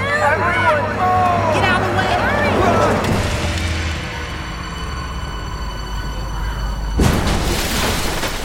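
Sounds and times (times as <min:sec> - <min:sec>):
bus engine drone: 0:00.0 - 0:07.0
bus crashing into water: 0:07.0 - 0:08.4.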